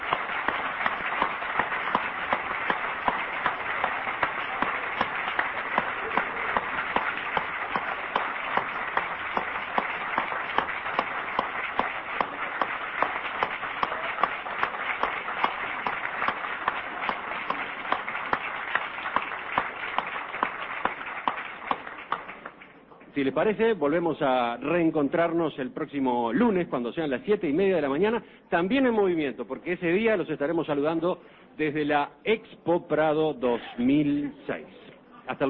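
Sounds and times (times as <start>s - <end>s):
audience applause: 0.0s - 22.8s
speech: 23.2s - 35.4s.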